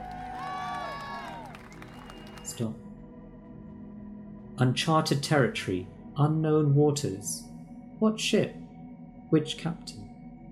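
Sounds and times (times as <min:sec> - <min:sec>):
crowd clapping: 0:00.0 - 0:02.6
scattered cheers: 0:00.0 - 0:02.6
gliding whistle-like tones: 0:01.6 - 0:02.6
speech: 0:02.6 - 0:02.8, 0:04.6 - 0:08.6, 0:09.3 - 0:10.1.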